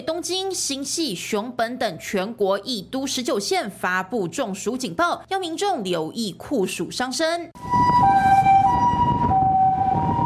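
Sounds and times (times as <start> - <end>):
speech: 0.0 - 8.0
ambulance siren: 7.6 - 10.2.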